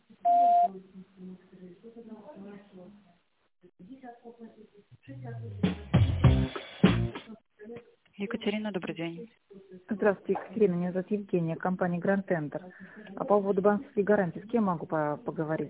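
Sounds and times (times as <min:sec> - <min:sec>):
telephone answering machine beep: 0:00.2 - 0:00.7
speech: 0:00.2 - 0:15.6.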